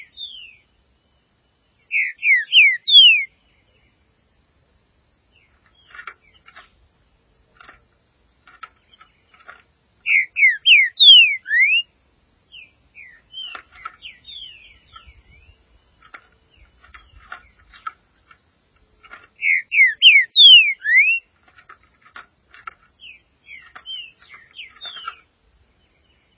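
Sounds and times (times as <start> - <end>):
green-winged saltator song: 0.0 - 0.6, 1.8 - 3.4, 10.0 - 11.9, 12.5 - 15.6, 19.4 - 21.3, 23.0 - 25.3.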